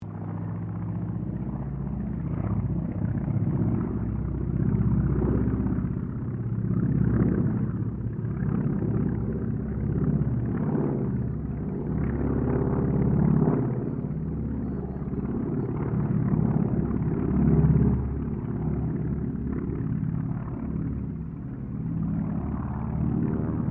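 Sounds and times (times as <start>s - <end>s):
CAC Wirraway aircraft pass: 0.0s - 23.6s.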